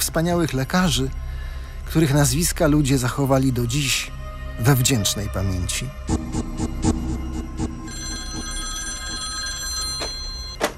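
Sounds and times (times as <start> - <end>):
speech: 0.0 - 6.8
telephone ringing with electric bell: 7.6 - 10.7.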